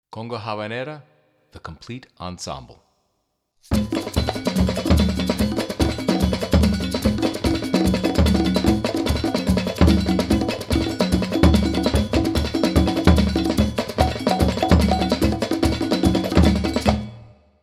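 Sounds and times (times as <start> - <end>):
conga drum: 3.7 - 17.3.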